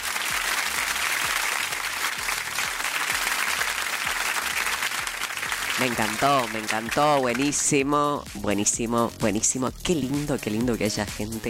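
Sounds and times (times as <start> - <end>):
applause: 0.0 - 7.6
speech: 5.8 - 11.4.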